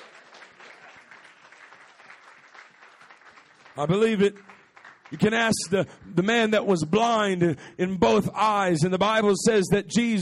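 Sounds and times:
audience clapping hands: 0:00.0 - 0:06.2
speech: 0:03.8 - 0:10.2.

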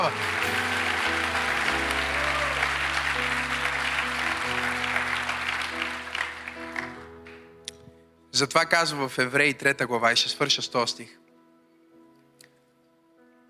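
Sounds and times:
audience applause: 0:00.0 - 0:07.1
speech: 0:08.4 - 0:11.2.

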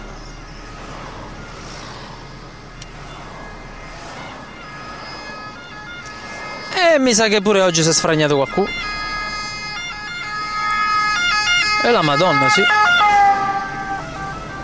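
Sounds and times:
ambulance siren passing behind car: 0:00.0 - 0:14.6
car interior rumble and road noise: 0:00.0 - 0:14.6
speech: 0:07.0 - 0:09.0, 0:11.9 - 0:12.9.

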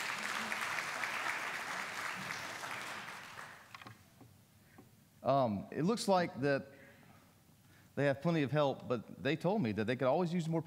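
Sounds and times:
crowd applause: 0:00.0 - 0:03.8
speech: 0:05.3 - 0:06.8, 0:08.0 - 0:10.6.

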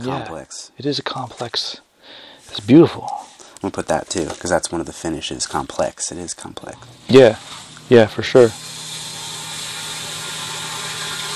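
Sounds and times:
speech: 0:00.0 - 0:08.7
sump pump running in a basement: 0:03.1 - 0:11.3.

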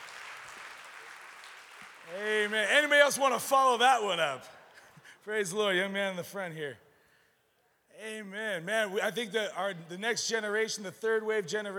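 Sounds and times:
crowd clapping: 0:00.0 - 0:03.8
speech: 0:02.1 - 0:04.6, 0:05.2 - 0:06.8, 0:08.0 - 0:11.7.

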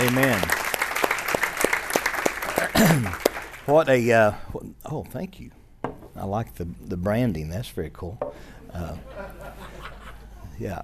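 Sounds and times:
audience applauding, clapping hands: 0:00.0 - 0:03.8
speech: 0:02.8 - 0:05.6, 0:06.2 - 0:09.4, 0:10.6 - 0:10.8
laughter: 0:08.6 - 0:10.6.

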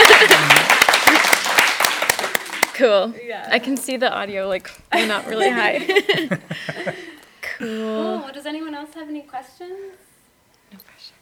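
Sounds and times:
laughter: 0:00.0 - 0:01.4, 0:05.0 - 0:07.2
audience clapping: 0:00.0 - 0:02.9
speech: 0:02.8 - 0:10.1, 0:10.7 - 0:11.2.

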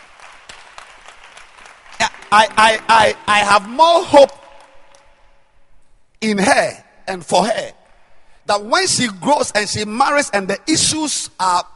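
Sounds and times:
crowd clapping: 0:00.0 - 0:05.1
speech: 0:02.3 - 0:04.4, 0:06.2 - 0:07.8, 0:08.5 - 0:11.7.

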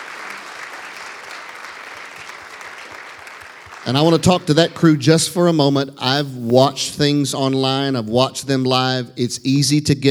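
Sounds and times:
audience applauding to welcome live stream viewers: 0:00.0 - 0:04.6
speech: 0:03.8 - 0:10.0.

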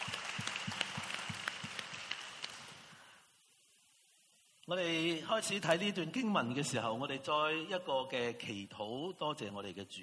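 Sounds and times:
audience applause: 0:00.0 - 0:03.0
speech: 0:04.7 - 0:10.0.

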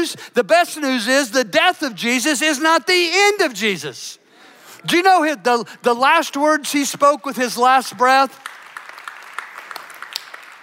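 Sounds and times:
speech: 0:00.0 - 0:04.2, 0:04.8 - 0:08.6
audience applause: 0:08.4 - 0:10.6.

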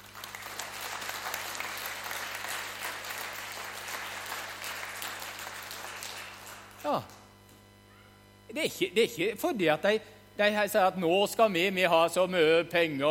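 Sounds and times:
audience applause: 0:00.0 - 0:07.2
low steady hum: 0:00.0 - 0:13.0
speech: 0:06.8 - 0:07.2, 0:08.5 - 0:13.0.

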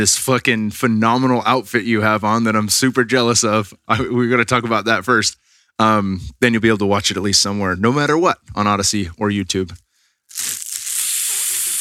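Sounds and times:
speech: 0:00.0 - 0:10.6
inhale drawn through burning tobacco: 0:10.0 - 0:11.7.

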